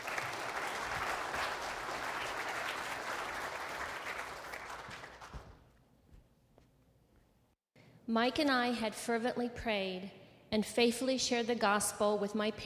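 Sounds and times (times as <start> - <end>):
audience applause: 0.0 - 5.6
speech: 8.1 - 12.6.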